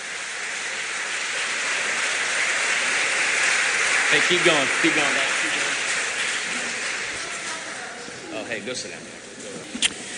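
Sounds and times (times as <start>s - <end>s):
audience applause: 0.0s - 8.0s
speech: 4.1s - 5.6s, 8.6s - 10.0s.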